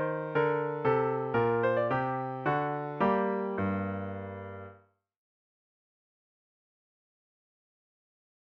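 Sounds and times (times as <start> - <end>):
minuet played as piano solo: 0.0 - 4.8.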